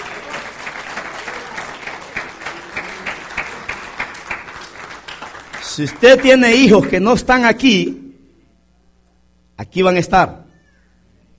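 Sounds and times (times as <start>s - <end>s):
audience applauding: 0.0s - 7.2s
speech: 5.8s - 8.0s, 9.6s - 10.4s.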